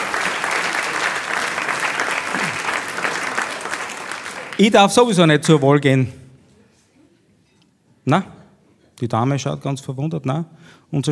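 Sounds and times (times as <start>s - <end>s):
audience applauding: 0.0s - 5.6s
speech: 4.6s - 6.2s, 8.0s - 8.4s, 9.0s - 11.1s.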